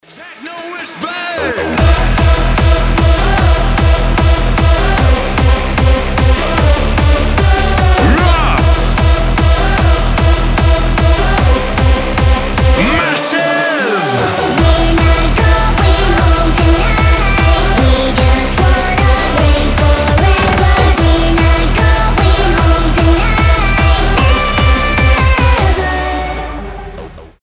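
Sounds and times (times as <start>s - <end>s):
techno music: 0.0s - 27.4s.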